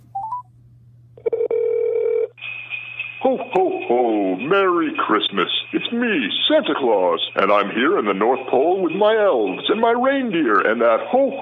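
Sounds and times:
low constant hum: 0:00.0 - 0:11.4
telephone dialing tones: 0:01.2 - 0:02.3
speech: 0:03.5 - 0:11.4.

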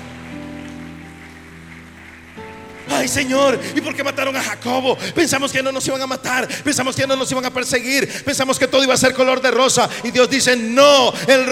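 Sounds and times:
audience clapping hands in praise: 0:00.0 - 0:06.6
speech: 0:02.4 - 0:11.5.

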